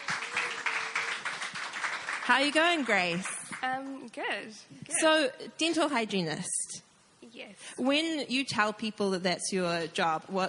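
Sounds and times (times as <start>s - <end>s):
audience applause: 0.0s - 3.6s
speech: 2.3s - 6.7s, 7.4s - 10.4s.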